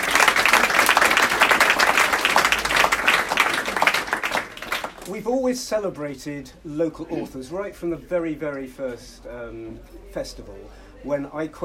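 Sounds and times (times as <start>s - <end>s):
audience applause: 0.0s - 5.1s
speech: 5.1s - 11.6s.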